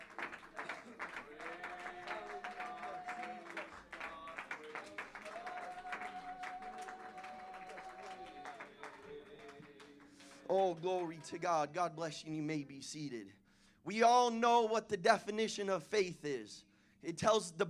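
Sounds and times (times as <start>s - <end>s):
audience clapping: 0.0s - 11.7s
speech: 10.5s - 17.6s.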